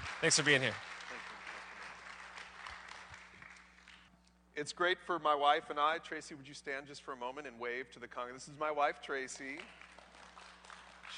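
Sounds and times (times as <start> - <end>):
round of applause: 0.0 - 4.1, 9.4 - 11.1
speech: 0.2 - 1.0, 4.6 - 9.8.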